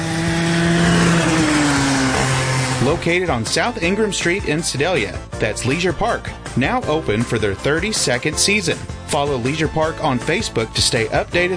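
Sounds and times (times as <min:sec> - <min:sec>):
go-kart racing around the track at Leisure Park in Sedalia: 0:00.0 - 0:04.0
speech: 0:02.9 - 0:11.5.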